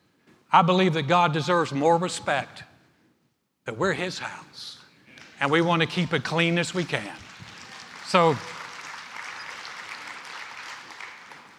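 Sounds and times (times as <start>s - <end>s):
speech: 0.5s - 2.7s, 3.7s - 4.8s, 5.4s - 7.2s, 8.1s - 8.6s
audience applause: 5.2s - 11.5s.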